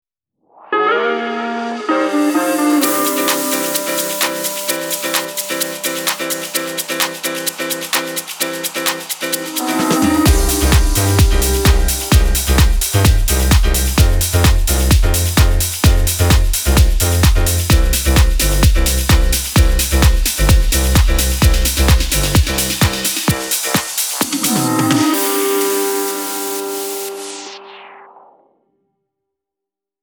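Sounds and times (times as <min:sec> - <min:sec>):
instrumental music: 0:00.8 - 0:27.5.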